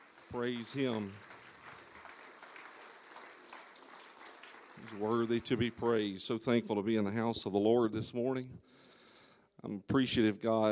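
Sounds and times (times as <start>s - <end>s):
audience hand clapping: 0.0s - 6.5s
speech: 0.3s - 1.3s, 4.8s - 8.8s, 9.6s - 10.7s.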